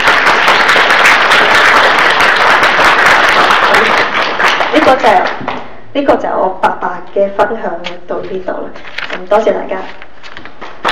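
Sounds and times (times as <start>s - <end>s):
crowd applauding: 0.0s - 5.2s
speech: 4.8s - 5.4s, 6.0s - 10.5s.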